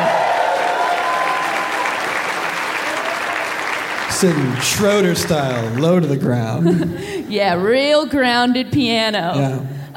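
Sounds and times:
audience applauding: 0.0 - 6.4
speech: 4.2 - 9.9.

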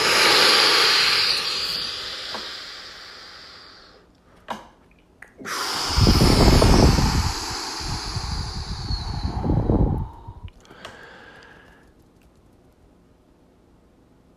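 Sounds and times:
deep breath in: 0.0 - 4.0, 5.5 - 11.9.

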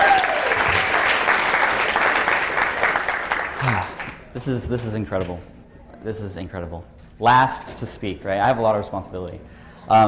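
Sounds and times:
audience applauding: 0.0 - 4.3
speech: 4.4 - 10.0.

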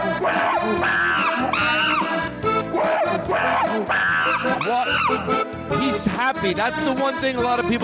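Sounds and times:
chimpanzee screaming: 0.2 - 5.4
speech: 4.6 - 7.8.

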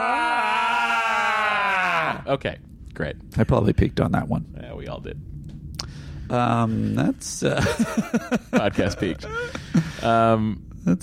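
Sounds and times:
person imitating a Klingon death scream: 0.0 - 2.3
speech: 2.3 - 5.4, 6.3 - 11.0
laughter: 7.5 - 10.0.

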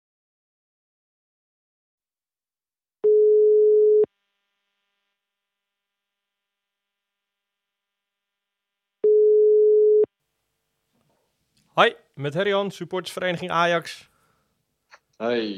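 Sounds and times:
telephone ringback tone: 3.0 - 4.1, 9.0 - 10.1
speech: 11.8 - 14.1, 15.2 - 15.5.

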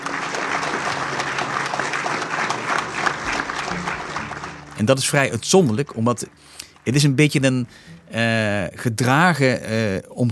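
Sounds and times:
enormous applause: 0.0 - 7.5
speech: 4.8 - 10.3.

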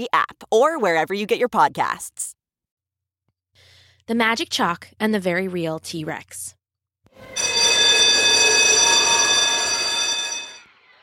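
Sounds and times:
speech: 0.0 - 2.3, 4.1 - 6.6
school recess bell ringing: 7.2 - 10.6.

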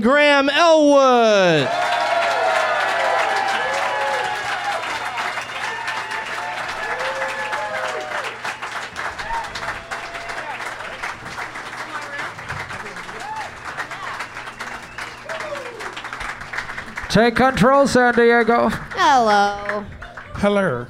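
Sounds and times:
speech: 0.0 - 1.9, 17.2 - 20.8
crowd whooping: 1.4 - 11.1, 12.8 - 16.2
audience applause: 1.4 - 20.8.

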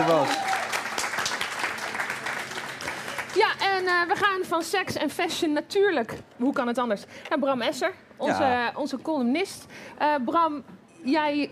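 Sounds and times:
big audience applause: 0.0 - 3.8
speech: 3.8 - 11.5.

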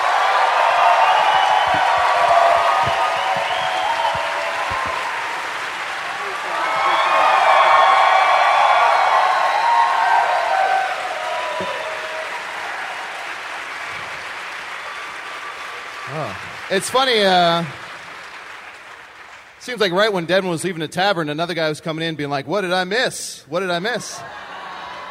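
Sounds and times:
cheers and whoops: 0.0 - 14.1, 24.2 - 25.0
crowd applause in a tavern: 0.0 - 20.1, 24.2 - 25.0
speech: 16.8 - 17.8, 19.7 - 24.4.

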